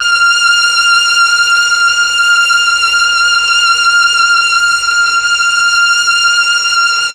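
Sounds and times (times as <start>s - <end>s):
Mellotron M400 strings: 0.0s - 7.1s.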